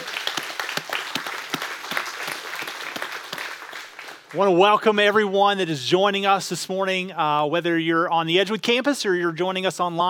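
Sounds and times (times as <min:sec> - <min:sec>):
church congregation applauding: 0:00.0 - 0:04.8
speech: 0:04.3 - 0:10.0.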